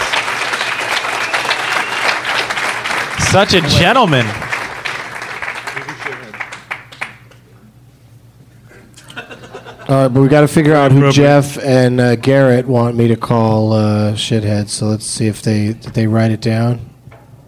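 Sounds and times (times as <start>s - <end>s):
audience clapping for the winner: 0.0s - 7.5s
speech: 3.3s - 4.4s, 9.9s - 16.9s
laughter: 8.7s - 10.2s.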